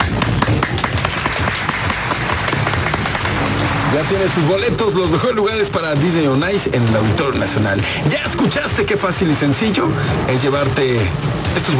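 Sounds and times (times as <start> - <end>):
applause: 0.0 - 4.6
speech: 4.0 - 11.7.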